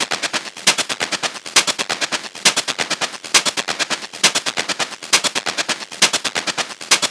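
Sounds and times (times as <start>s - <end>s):
techno percussion loop 135: 0.0s - 7.0s.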